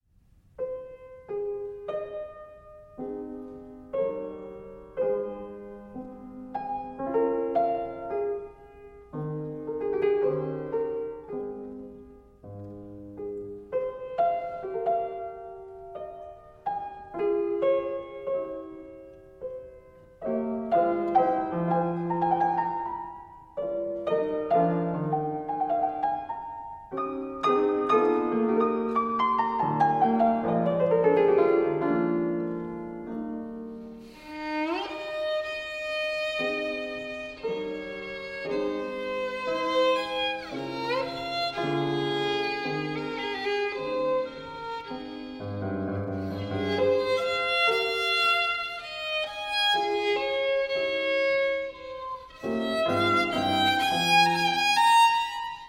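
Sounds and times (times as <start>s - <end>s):
sonata in F minor poco adagio: 0.6s - 55.6s.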